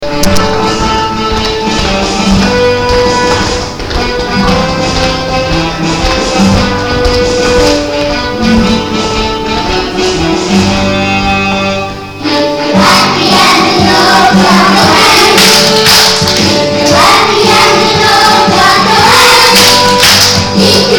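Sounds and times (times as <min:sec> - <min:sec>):
English song: 0:00.0 - 0:20.9.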